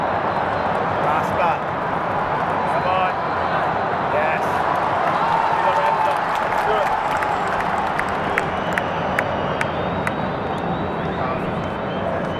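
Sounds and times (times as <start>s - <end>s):
people clapping: 0.0s - 3.1s, 4.2s - 10.8s
football crowd roaring at Wembley: 0.0s - 12.3s.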